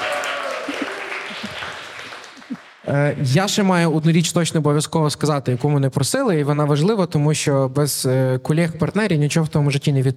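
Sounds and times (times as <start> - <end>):
audience applause: 0.0 - 3.3
speech: 2.9 - 10.1.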